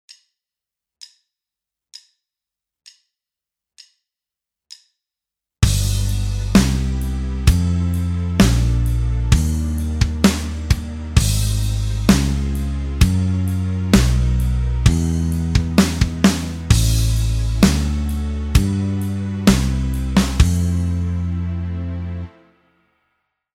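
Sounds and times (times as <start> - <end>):
backing music: 5.6 - 22.8.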